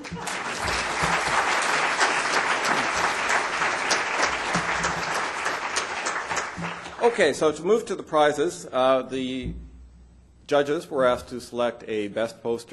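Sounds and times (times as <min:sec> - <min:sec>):
audience applause: 0:00.0 - 0:07.4
speech: 0:07.0 - 0:09.6, 0:10.5 - 0:12.7.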